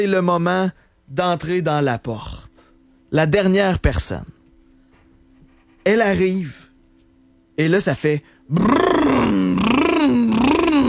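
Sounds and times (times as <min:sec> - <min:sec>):
speech: 0:00.0 - 0:02.4, 0:03.1 - 0:04.4, 0:05.8 - 0:06.6, 0:07.6 - 0:10.6
voice imitating a revving Lamborghini Urus SUV engine: 0:08.5 - 0:10.8.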